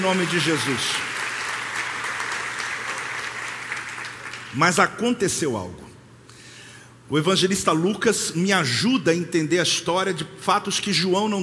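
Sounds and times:
speech: 0.0s - 1.2s, 4.5s - 5.9s, 7.1s - 11.4s
audience applause: 0.0s - 4.6s.

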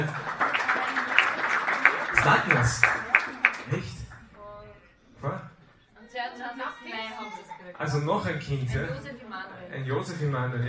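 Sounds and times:
audience clapping: 0.0s - 4.3s
speech: 2.3s - 2.9s, 7.8s - 10.6s.

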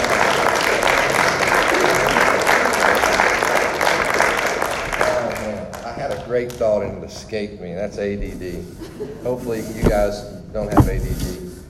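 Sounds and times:
audience applause: 0.0s - 6.6s
speech: 6.4s - 11.4s
laughter: 8.7s - 9.5s.

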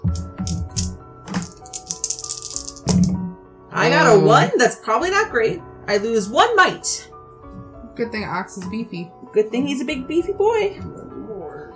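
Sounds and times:
four dice rattling: 0.0s - 3.2s
speech: 3.8s - 7.1s, 8.0s - 11.0s.

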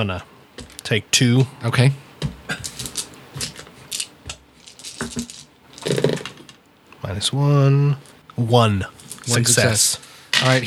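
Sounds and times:
speech: 0.0s - 0.3s, 0.9s - 2.6s, 7.2s - 10.6s
dice rattling across a hard surface: 2.7s - 6.5s.

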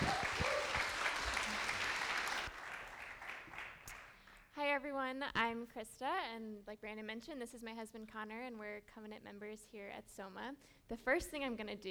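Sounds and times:
church congregation clapping before an Advent sermon: 0.0s - 4.5s
speech: 5.1s - 11.8s.

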